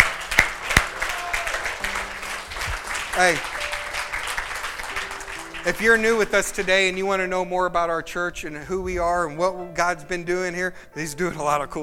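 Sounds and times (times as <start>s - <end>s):
audience clapping hands: 0.0s - 7.3s
speech: 3.2s - 3.6s, 5.6s - 11.8s.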